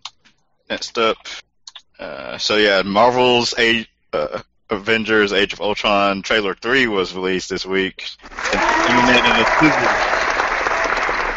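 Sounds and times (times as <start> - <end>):
speech: 0.7 - 1.4, 2.0 - 10.3
applause: 8.2 - 11.3.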